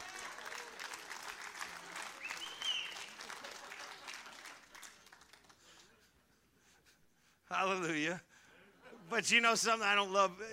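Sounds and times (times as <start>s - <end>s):
audience clapping: 0.0s - 6.1s
speech: 7.5s - 8.3s, 9.1s - 10.5s.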